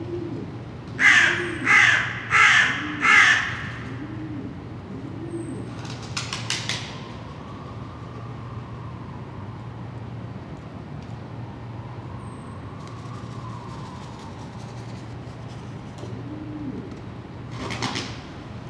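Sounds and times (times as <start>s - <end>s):
crows cawing: 1.0s - 4.1s.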